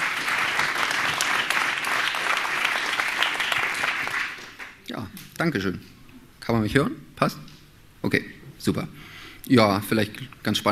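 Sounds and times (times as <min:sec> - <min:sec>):
audience applause: 0:00.0 - 0:04.8
speech: 0:04.9 - 0:10.7.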